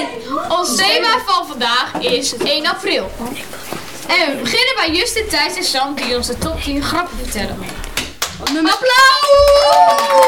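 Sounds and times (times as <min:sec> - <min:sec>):
speech: 0:00.0 - 0:07.8, 0:08.4 - 0:10.2
several hands clapping: 0:07.6 - 0:10.2.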